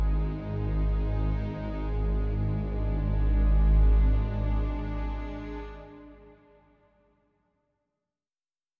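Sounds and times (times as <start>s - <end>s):
calm mysterious woodland music: 0.0s - 7.0s.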